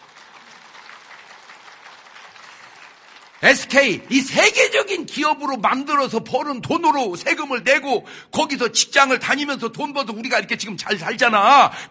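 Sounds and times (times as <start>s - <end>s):
crowd applause: 0.0s - 4.1s
speech: 3.4s - 11.8s.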